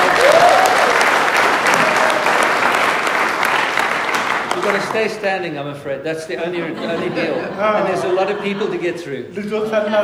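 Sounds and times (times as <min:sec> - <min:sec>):
audience cheering and applause: 0:00.0 - 0:05.1
speech: 0:04.9 - 0:10.0
laughter: 0:06.4 - 0:10.0.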